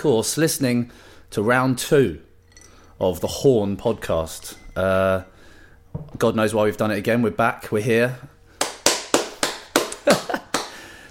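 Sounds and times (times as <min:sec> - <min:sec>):
speech: 0:00.0 - 0:02.3, 0:03.0 - 0:05.3, 0:05.9 - 0:08.3
hand clapping: 0:08.6 - 0:10.9.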